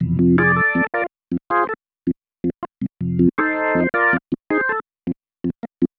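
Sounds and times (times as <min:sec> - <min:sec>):
organ chord progression loops: 0:00.0 - 0:01.8, 0:02.4 - 0:04.8.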